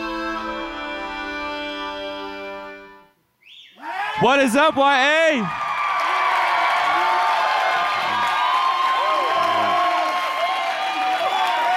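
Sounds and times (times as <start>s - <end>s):
speech: 4.2s - 5.6s
audience applause: 4.7s - 11.7s
crowd cheering and whooping: 5.4s - 11.7s.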